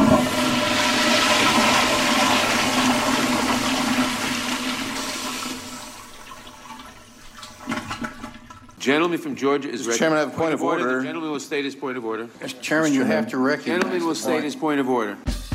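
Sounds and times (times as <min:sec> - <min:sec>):
toilet flushing: 0:00.0 - 0:09.0
speech: 0:08.8 - 0:15.4.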